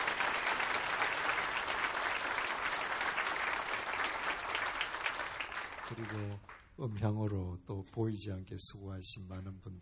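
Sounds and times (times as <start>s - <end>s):
audience applause: 0.0s - 6.7s
speech: 6.0s - 9.8s.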